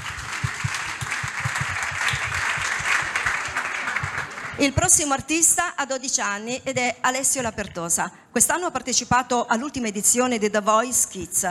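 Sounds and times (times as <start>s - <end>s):
audience applause: 0.0s - 4.6s
speech: 4.6s - 11.4s.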